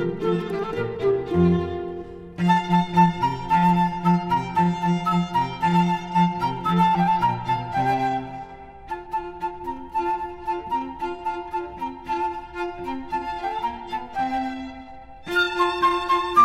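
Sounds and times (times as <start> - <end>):
cello: 0.0 - 16.4
flute: 0.0 - 16.4
harp: 0.0 - 16.4
violin: 0.0 - 16.4.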